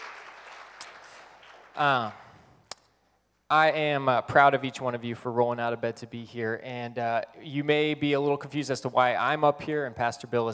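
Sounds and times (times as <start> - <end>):
audience applause: 0.0 - 2.4
speech: 1.8 - 2.2, 3.5 - 10.5.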